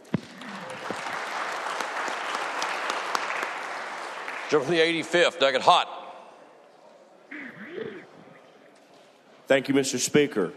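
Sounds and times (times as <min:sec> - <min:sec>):
applause in a legislative House chamber: 0:00.0 - 0:05.3
speech: 0:04.5 - 0:05.9, 0:09.5 - 0:10.5.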